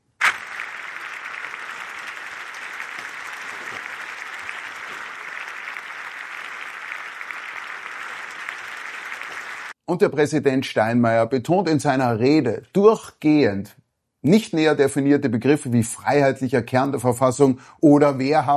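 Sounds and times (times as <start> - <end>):
front-row audience clapping and cheering: 0.0 - 9.8
speech: 9.9 - 18.5.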